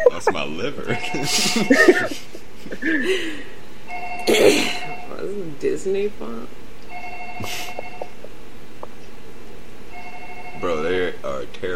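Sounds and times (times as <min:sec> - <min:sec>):
speech: 0:00.0 - 0:03.6, 0:04.2 - 0:06.6, 0:07.4 - 0:07.7, 0:10.6 - 0:11.7
laughter: 0:00.9 - 0:03.6, 0:07.4 - 0:09.0
telephone ringing in the 1998 horror film Ringu: 0:06.9 - 0:08.2, 0:09.9 - 0:10.8.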